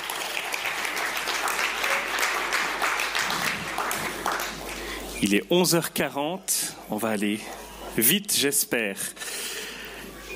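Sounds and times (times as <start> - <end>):
audience applause: 0.0 - 5.2
speech: 5.2 - 9.3.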